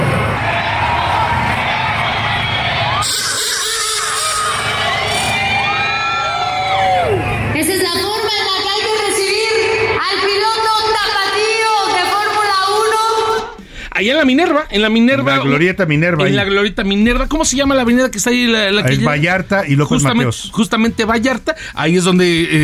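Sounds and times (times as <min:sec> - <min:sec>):
crowd cheering a racing driver: 0:00.0 - 0:13.6
speech: 0:14.6 - 0:22.6.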